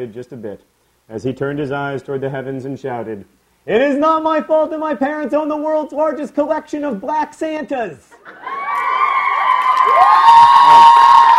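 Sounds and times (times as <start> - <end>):
speech: 0.0 - 8.4
audience cheering and clapping: 8.3 - 11.3.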